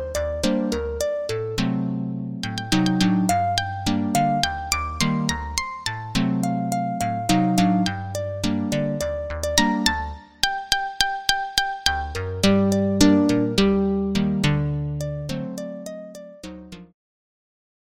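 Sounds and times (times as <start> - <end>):
synth harp: 0.0 - 16.9.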